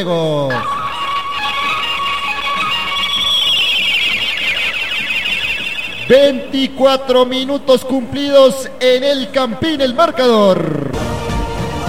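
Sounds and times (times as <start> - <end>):
speech: 0.0 - 0.8, 6.1 - 11.0
loud electronic buzzer: 0.5 - 6.8.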